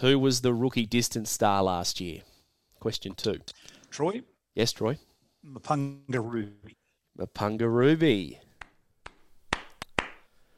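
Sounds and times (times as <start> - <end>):
speech: 0.0 - 8.4
clapping stinger sound effect: 9.1 - 10.2.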